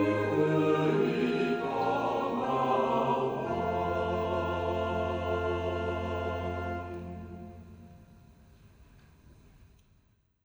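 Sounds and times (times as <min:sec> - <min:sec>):
choir singing: 0:00.0 - 0:08.0.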